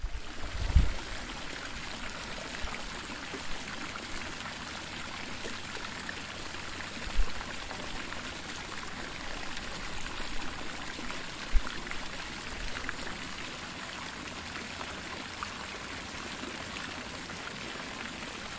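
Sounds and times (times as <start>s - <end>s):
soft low thumps: 0.0s - 1.0s
running water flowing up from deep beneath the earth: 0.0s - 18.5s.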